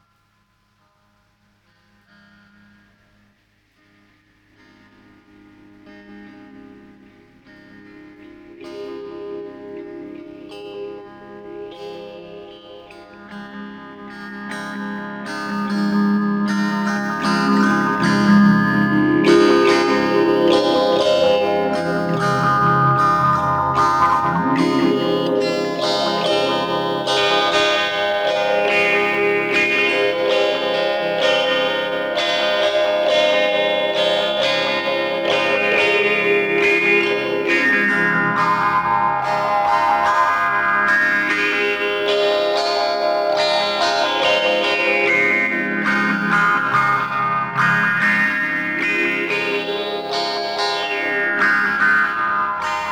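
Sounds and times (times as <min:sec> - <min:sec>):
music: 0:00.0 - 0:52.9.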